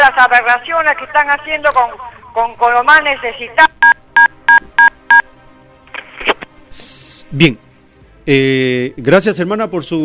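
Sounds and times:
speech: 0:00.1 - 0:03.8, 0:06.7 - 0:07.6, 0:08.2 - 0:10.0
telephone beeps from a cut-off phoned-in call: 0:03.8 - 0:05.3.

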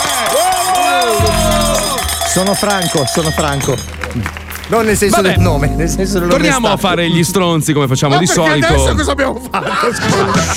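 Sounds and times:
applause: 0:00.0 - 0:05.5
speech: 0:02.4 - 0:10.5
laughter: 0:08.1 - 0:10.5.

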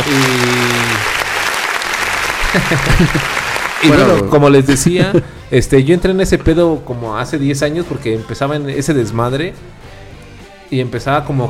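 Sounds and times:
applause: 0:00.0 - 0:04.2
laughter: 0:02.2 - 0:05.2
speech: 0:02.6 - 0:09.9, 0:10.7 - 0:11.4.

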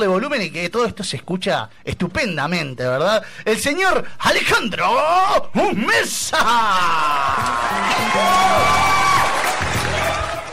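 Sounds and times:
speech: 0:00.0 - 0:09.4
applause: 0:07.4 - 0:10.5.

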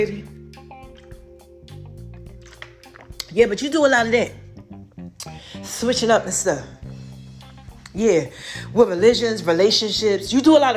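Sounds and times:
speech: 0:00.0 - 0:00.4, 0:03.3 - 0:04.4, 0:05.8 - 0:06.8, 0:07.9 - 0:10.7
sipping a drink: 0:00.5 - 0:03.4.

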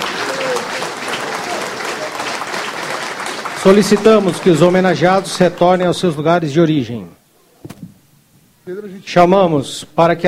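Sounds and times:
applause for honorees: 0:00.0 - 0:05.9
speech: 0:03.6 - 0:07.2, 0:08.7 - 0:10.2.

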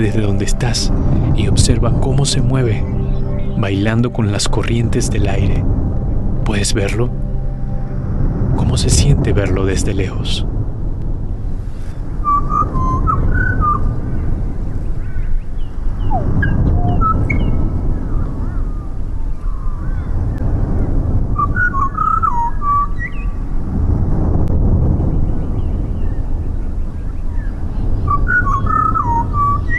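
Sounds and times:
speech: 0:00.0 - 0:03.0, 0:03.6 - 0:07.3, 0:08.7 - 0:10.5
low rushing background: 0:00.0 - 0:29.7
small bird whistling: 0:12.2 - 0:13.9, 0:16.0 - 0:17.7, 0:28.1 - 0:29.7.

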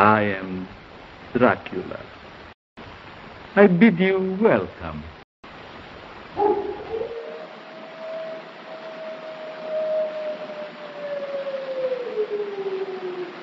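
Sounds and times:
speech: 0:00.0 - 0:02.1, 0:03.6 - 0:05.1
constant hiss of old film sound: 0:00.0 - 0:13.4
wolves howling in the 1931 film Dracula: 0:06.4 - 0:13.4.

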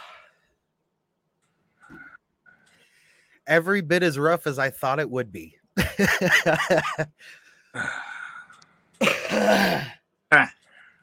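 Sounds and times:
speech: 0:03.5 - 0:08.1, 0:09.4 - 0:10.6
laughter: 0:05.8 - 0:07.2
chesty cough: 0:09.0 - 0:10.6.

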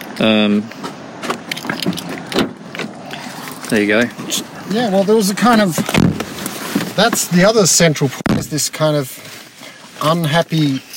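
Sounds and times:
people getting into a car: 0:00.0 - 0:10.9
speech: 0:00.2 - 0:00.9, 0:03.7 - 0:06.2, 0:07.0 - 0:09.3, 0:10.0 - 0:10.9.

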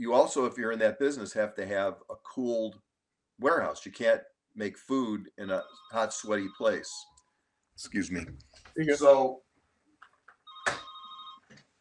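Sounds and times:
speech: 0:00.0 - 0:07.1, 0:07.8 - 0:09.4
fax machine ringing: 0:05.6 - 0:07.2, 0:10.5 - 0:11.5.

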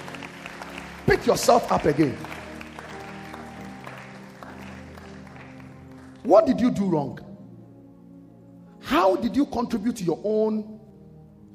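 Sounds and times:
audience clapping hands: 0:00.0 - 0:06.8
speech: 0:01.1 - 0:02.3, 0:06.3 - 0:07.2, 0:08.9 - 0:10.8.

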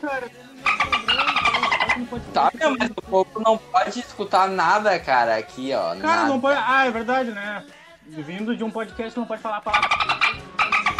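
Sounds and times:
speech: 0:00.0 - 0:01.2, 0:02.0 - 0:10.3
voice imitating dolphin squeaks: 0:00.6 - 0:02.2, 0:09.7 - 0:10.9.

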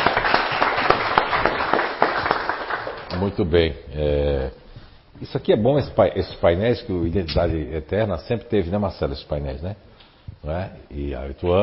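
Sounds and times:
crowd applause: 0:00.0 - 0:03.1
speech: 0:03.2 - 0:04.6, 0:05.2 - 0:11.6.

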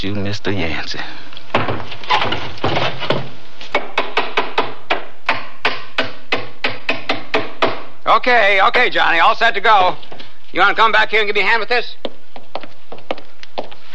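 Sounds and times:
speech: 0:00.0 - 0:02.5, 0:08.1 - 0:12.0
hammering nails into a wooden box lid: 0:03.7 - 0:07.9.

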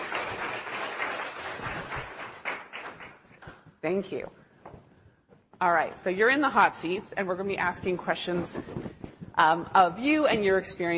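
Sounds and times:
audience applause at a company investor day welcoming a panel: 0:00.0 - 0:03.2
speech: 0:03.8 - 0:04.4, 0:05.6 - 0:10.9.

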